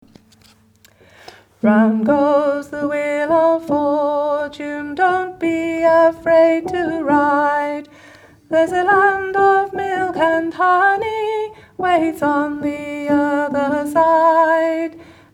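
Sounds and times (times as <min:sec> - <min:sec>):
gospel choir altos singing: 0:01.6 - 0:07.9, 0:08.5 - 0:15.0.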